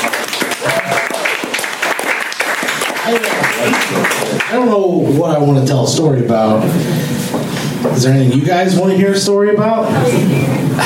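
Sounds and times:
audience applause: 0.0 - 4.7
speech: 3.9 - 7.2, 7.9 - 10.8.

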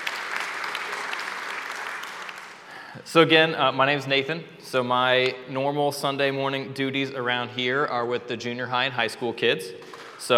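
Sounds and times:
audience applause: 0.0 - 2.9
speech: 3.0 - 10.3.

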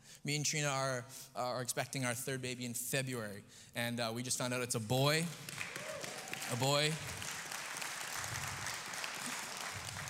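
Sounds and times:
speech: 0.2 - 5.8, 6.5 - 7.2
audience clapping: 5.2 - 10.0.

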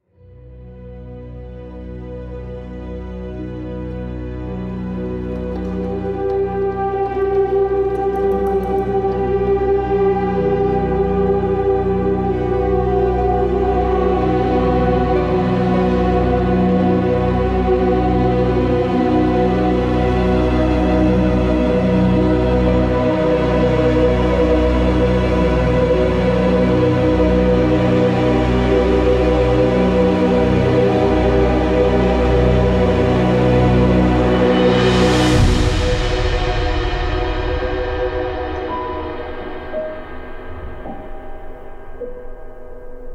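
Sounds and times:
haunted intro music: 0.1 - 43.1.

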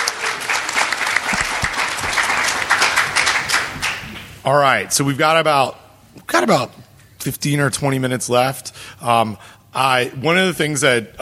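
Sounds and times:
audience applause: 0.0 - 4.4
speech: 4.4 - 11.2.

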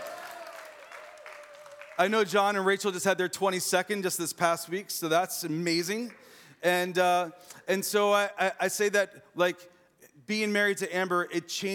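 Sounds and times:
audience clapping: 0.0 - 2.7
speech: 2.0 - 11.7.

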